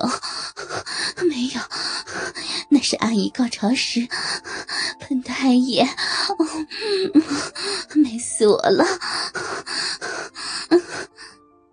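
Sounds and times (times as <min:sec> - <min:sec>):
speech: 0:00.0 - 0:00.3, 0:01.2 - 0:01.8, 0:03.0 - 0:04.6, 0:05.4 - 0:10.2
woman gasping and panting: 0:00.0 - 0:02.7, 0:05.9 - 0:08.0, 0:08.8 - 0:11.4.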